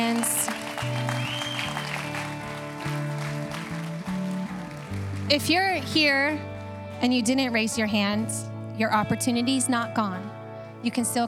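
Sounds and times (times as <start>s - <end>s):
audience clapping: 0.0s - 6.0s
speech: 5.3s - 11.2s.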